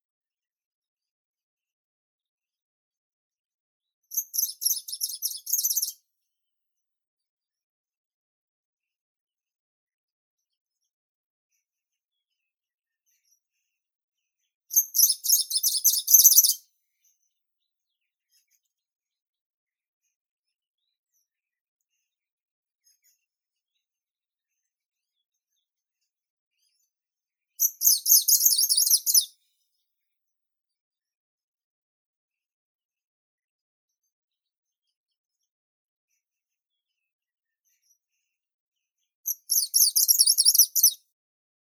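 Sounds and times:
greenish warbler Phylloscopus trochiloides singing: 4.2s - 5.9s, 14.8s - 16.6s, 27.6s - 29.3s, 39.3s - 41.0s.

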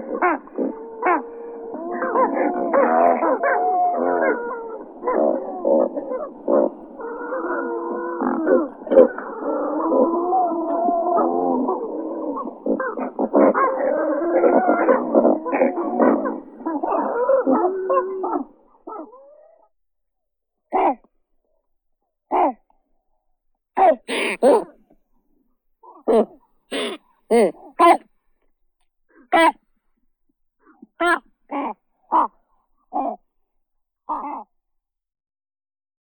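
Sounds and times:
great white pelican Pelecanus onocrotalus calling: 0.0s - 18.5s, 23.8s - 24.7s, 26.0s - 28.0s, 29.3s - 29.6s, 31.0s - 32.3s.

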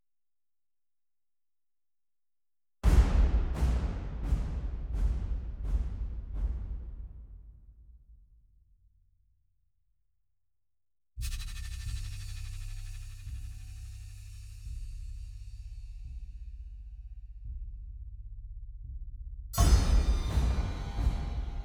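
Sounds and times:
percussion: 2.8s - 8.6s, 11.2s - 21.6s.

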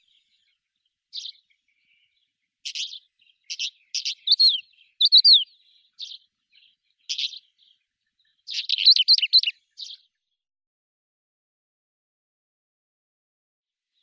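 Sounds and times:
pied wheatear Oenanthe pleschanka calling: 4.0s - 5.4s, 8.6s - 9.5s.

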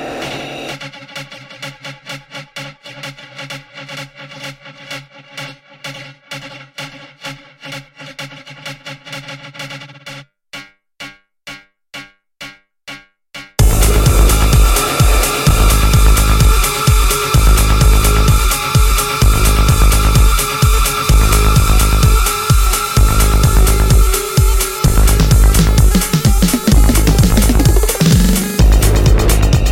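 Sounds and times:
remix music: 13.6s - 29.7s.

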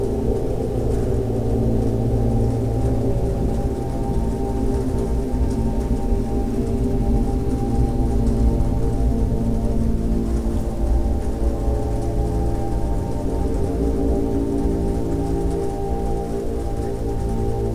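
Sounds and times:
relaxing music for meditation: 0.0s - 17.7s.

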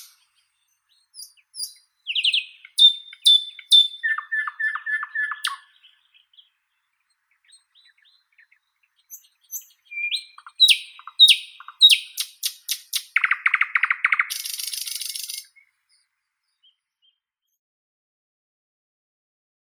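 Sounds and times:
common nightingale Luscinia luscinia singing: 0.0s - 17.2s.

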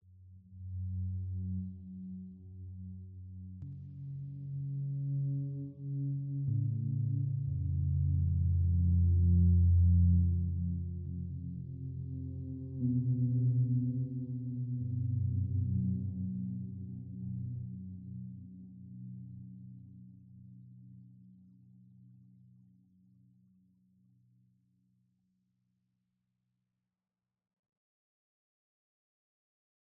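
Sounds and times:
ambient music: 0.4s - 20.7s.

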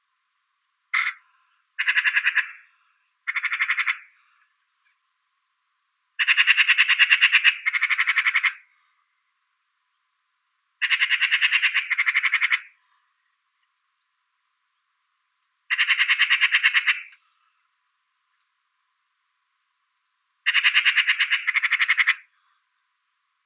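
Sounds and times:
Eurasian magpie Pica pica calling: 0.9s - 4.4s, 6.2s - 8.8s, 10.8s - 12.8s, 15.7s - 17.2s, 20.4s - 22.4s.

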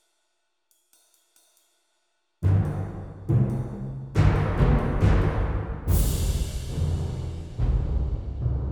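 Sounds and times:
percussion-only arrangement of a Christmas carol: 2.4s - 8.6s.

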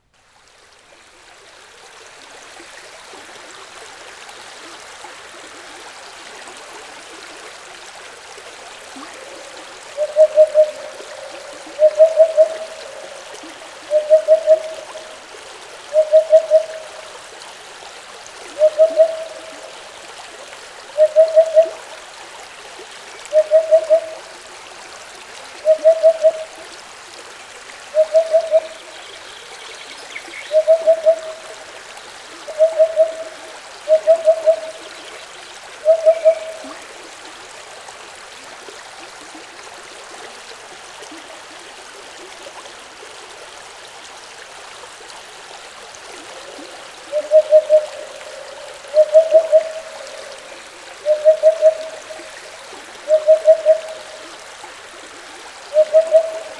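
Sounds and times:
stream flowing: 0.1s - 56.5s
hoopoe singing by a stream: 9.1s - 15.2s, 15.9s - 17.1s, 18.6s - 19.8s, 21.0s - 21.8s, 23.3s - 24.2s, 28.0s - 28.9s, 30.4s - 31.5s, 32.5s - 34.9s, 35.8s - 36.7s, 47.1s - 54.4s, 55.7s - 56.5s.

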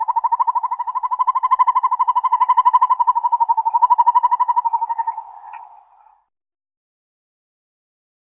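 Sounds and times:
northern hawk owl Surnia ulula calling: 0.0s - 6.3s.

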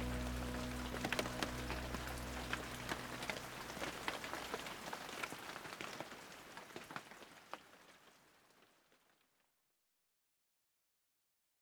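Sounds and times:
rain: 0.0s - 9.3s.

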